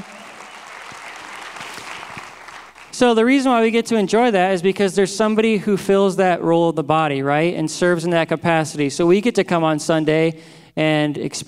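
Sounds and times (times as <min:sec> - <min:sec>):
audience applause: 0:00.0 - 0:03.1
speech: 0:03.0 - 0:11.4.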